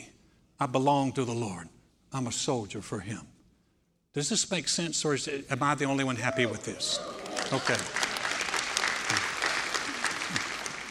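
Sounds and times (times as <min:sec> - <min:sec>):
speech: 0:00.6 - 0:03.4, 0:04.2 - 0:08.1
golf clap from audience: 0:07.3 - 0:10.8.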